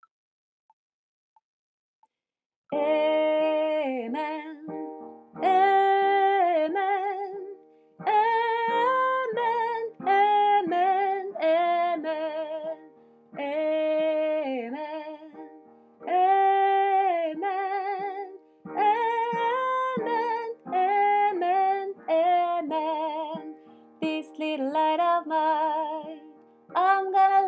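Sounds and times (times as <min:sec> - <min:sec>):
soprano singing: 0:02.7 - 0:27.4.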